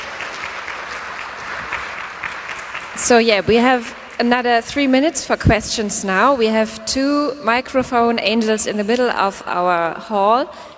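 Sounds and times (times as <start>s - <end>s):
audience applause in a lecture hall: 0.0s - 4.2s
speech: 3.0s - 10.7s.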